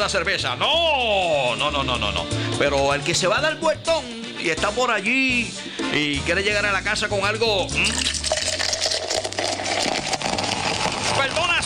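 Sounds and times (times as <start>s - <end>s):
speech: 0.0s - 8.2s
cold beer poured into a glass until foam forms: 7.7s - 11.6s.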